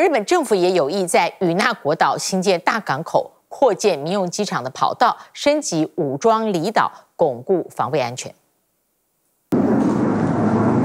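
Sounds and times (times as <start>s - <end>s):
speech: 0.0s - 8.4s
Japan Air Self-Defense Force fighter jet flying past fast: 9.6s - 10.8s.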